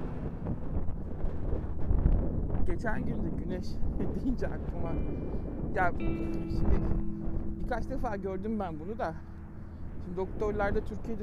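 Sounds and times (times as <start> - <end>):
wind blowing outdoors buffeting the microphone while someone walks: 0.0 - 11.2
speech: 2.8 - 7.1, 7.7 - 9.3, 10.0 - 11.2.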